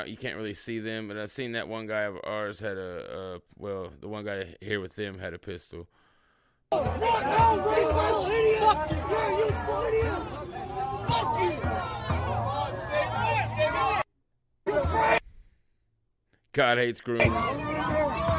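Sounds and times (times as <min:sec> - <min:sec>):
speech: 0:00.0 - 0:06.0, 0:06.7 - 0:12.0, 0:16.5 - 0:18.0
crowd yelling at a street protest: 0:06.7 - 0:14.1, 0:14.7 - 0:15.2, 0:17.2 - 0:18.3.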